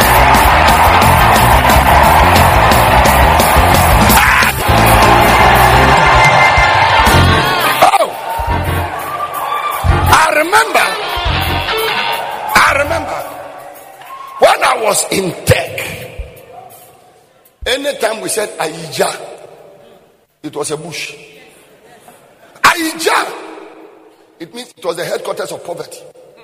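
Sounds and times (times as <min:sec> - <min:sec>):
music: 0:00.0 - 0:14.4
audience shouting and cheering: 0:00.0 - 0:17.6
speech: 0:18.3 - 0:19.3, 0:20.4 - 0:21.3, 0:24.4 - 0:26.2.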